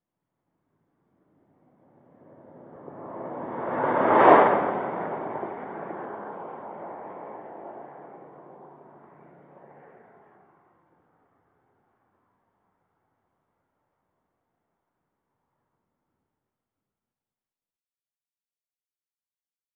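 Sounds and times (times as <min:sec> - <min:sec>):
small compact car passing by at 100mph: 0:01.4 - 0:11.7.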